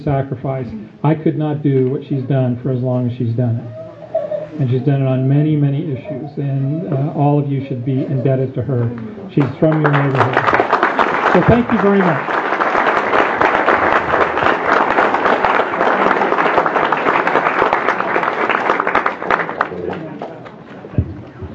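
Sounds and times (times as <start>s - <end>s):
speech: 0.0s - 3.8s, 4.6s - 10.7s, 11.4s - 12.4s
round of applause: 9.4s - 21.0s.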